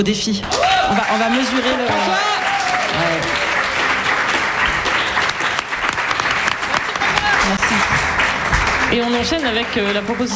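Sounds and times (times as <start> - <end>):
speech: 0.0 - 3.4, 8.9 - 10.3
audience applause: 0.4 - 10.3.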